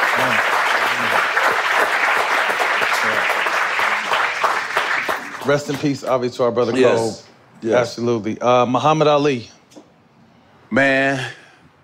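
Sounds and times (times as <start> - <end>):
crowd clapping in tribute: 0.0 - 6.3
speech: 5.5 - 9.5, 10.7 - 11.4.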